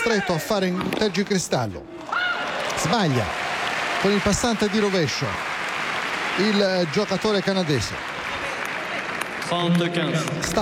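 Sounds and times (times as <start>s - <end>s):
speech: 0.0s - 2.2s, 2.8s - 3.4s, 4.0s - 5.5s, 6.4s - 8.1s, 9.5s - 10.5s
scattered claps from a player box at a tennis match: 3.6s - 10.5s.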